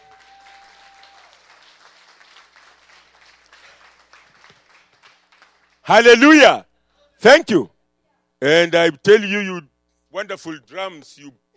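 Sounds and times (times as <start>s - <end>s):
large crowd applauding: 0.0s - 5.9s
speech: 5.9s - 7.7s, 8.4s - 11.4s.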